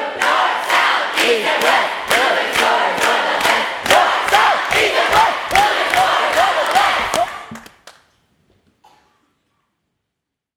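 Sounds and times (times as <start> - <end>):
people cheering: 0.2 - 7.9.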